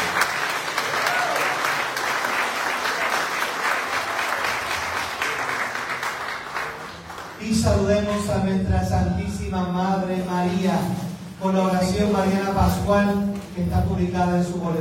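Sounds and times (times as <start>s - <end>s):
audience applause: 0.0s - 7.4s
speech: 7.8s - 14.8s.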